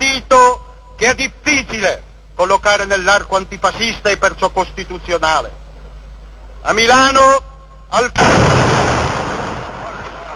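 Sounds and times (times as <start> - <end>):
speech: 1.0 - 5.6, 6.6 - 8.9
bomb explosion in a crowded square: 8.2 - 10.3.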